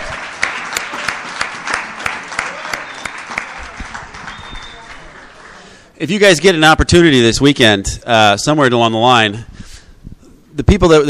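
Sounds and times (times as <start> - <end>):
audience applause: 0.0 - 5.9
speech: 6.0 - 9.5, 10.6 - 11.0.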